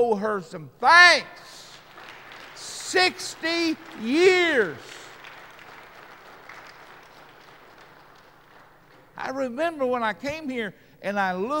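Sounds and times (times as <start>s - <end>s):
speech: 0.0s - 1.6s, 2.9s - 5.0s, 9.2s - 11.5s
audience applause: 1.6s - 9.2s.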